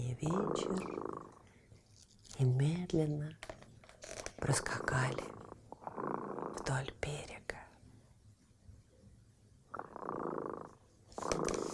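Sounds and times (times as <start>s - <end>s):
cat purring: 0.0s - 1.6s, 4.0s - 7.6s, 9.6s - 11.7s
speech: 0.1s - 1.4s, 2.4s - 3.6s, 4.4s - 5.4s, 6.7s - 7.2s.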